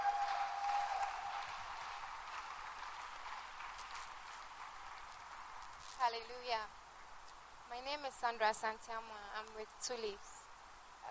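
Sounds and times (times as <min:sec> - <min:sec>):
congregation applauding in a church: 0:00.0 - 0:06.0
speech: 0:06.0 - 0:06.8, 0:07.7 - 0:10.3.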